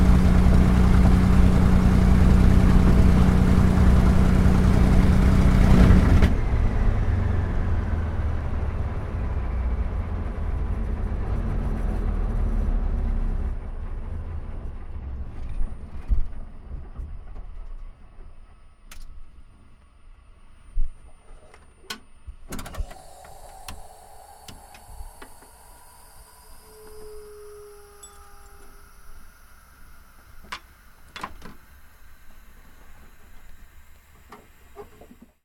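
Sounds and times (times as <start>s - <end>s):
CAC CA-18 Mustang Mk23 taxiing from the interior: 0.0s - 13.6s, 22.8s - 35.3s.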